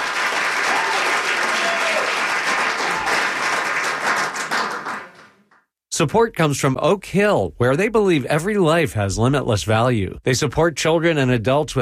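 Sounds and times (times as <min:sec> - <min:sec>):
audience applause: 0:00.0 - 0:05.6
speech: 0:06.0 - 0:11.8.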